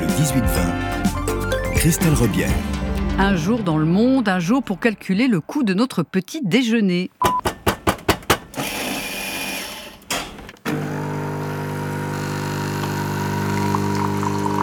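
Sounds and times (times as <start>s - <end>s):
speech: 0.2s - 1.2s, 1.8s - 7.4s
coffee machine making coffee: 8.6s - 14.6s.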